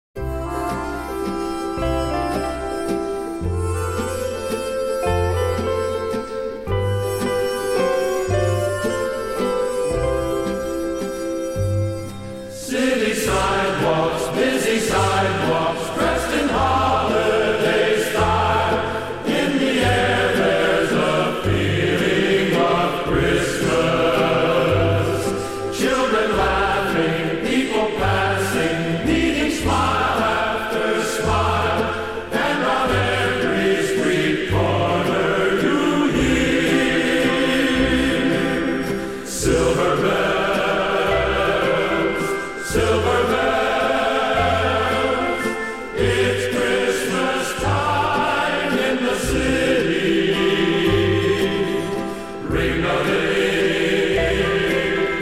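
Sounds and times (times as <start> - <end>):
orchestra and chorus: 0.2 - 55.1.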